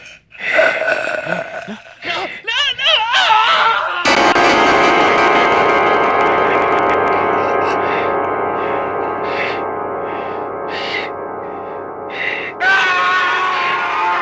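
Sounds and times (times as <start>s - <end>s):
creepy sounds: 0.5s - 2.5s, 3.3s - 14.2s
woman screaming: 1.7s - 4.1s, 12.6s - 14.2s.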